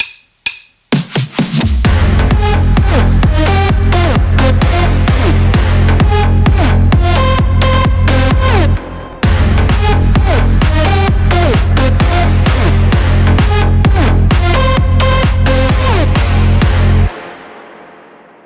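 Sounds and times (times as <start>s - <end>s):
big room music: 0.0s - 18.4s.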